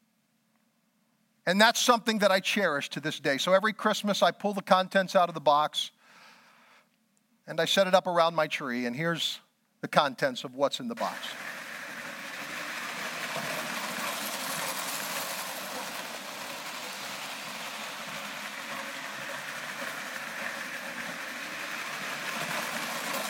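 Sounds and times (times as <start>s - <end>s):
speech: 1.5s - 6.0s, 7.5s - 11.5s
vintage Lionel toy train set from the 1940s running: 11.0s - 23.2s.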